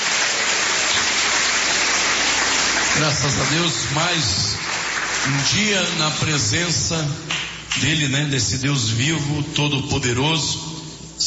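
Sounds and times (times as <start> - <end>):
church congregation clapping during a service: 0.0 - 8.0
speech: 3.0 - 4.5, 5.2 - 11.2.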